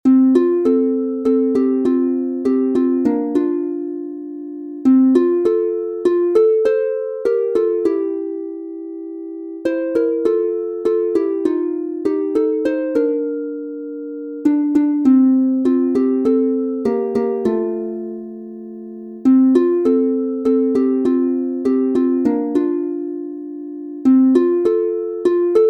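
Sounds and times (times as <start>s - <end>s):
harp instrumental in F major: 0.0s - 25.6s.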